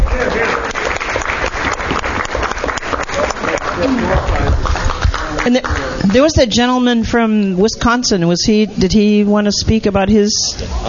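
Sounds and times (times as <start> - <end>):
audience applause: 0.0 - 6.1
murmur of crowd voices: 0.0 - 6.2
speech: 5.5 - 10.8.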